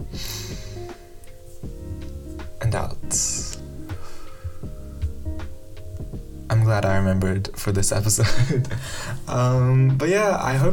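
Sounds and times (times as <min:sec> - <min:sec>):
quick deep breath in: 0:00.1 - 0:01.0, 0:03.9 - 0:04.7, 0:08.8 - 0:09.2
speech: 0:02.7 - 0:03.4, 0:06.7 - 0:10.7.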